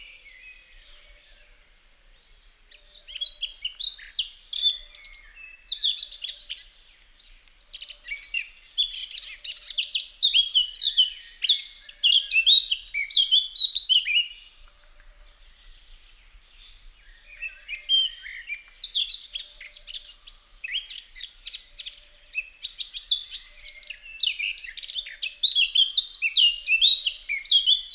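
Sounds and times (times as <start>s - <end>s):
Eurasian blackcap song: 2.7s - 14.4s, 17.3s - 27.9s.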